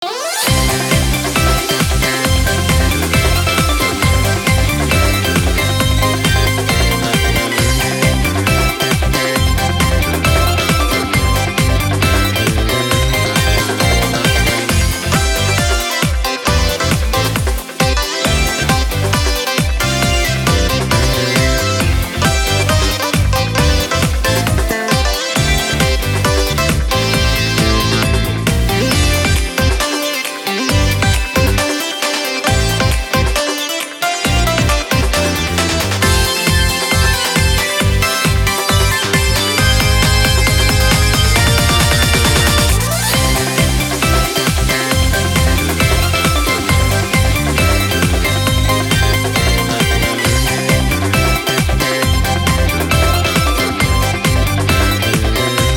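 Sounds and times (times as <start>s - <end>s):
music at an event: 0.0s - 55.7s.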